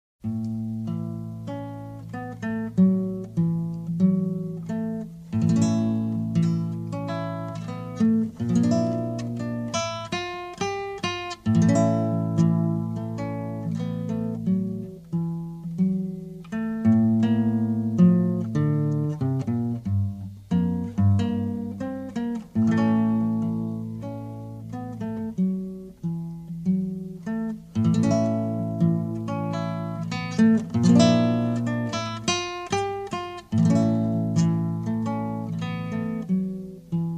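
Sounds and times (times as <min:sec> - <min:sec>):
guitar version: 0:00.2 - 0:37.1.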